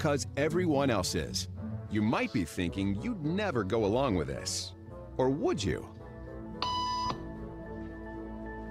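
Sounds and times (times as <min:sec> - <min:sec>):
speech: 0:00.0 - 0:06.0
electronic beep tone: 0:06.6 - 0:07.2.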